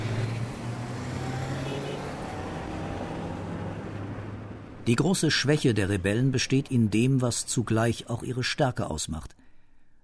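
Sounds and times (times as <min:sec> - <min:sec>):
cars speeding away in retreat: 0:00.0 - 0:04.8
speech: 0:04.8 - 0:09.4.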